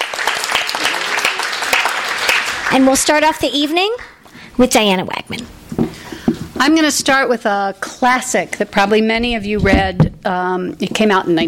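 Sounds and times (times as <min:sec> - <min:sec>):
audience applause: 0:00.0 - 0:03.1
speech: 0:02.7 - 0:05.6, 0:06.6 - 0:11.4.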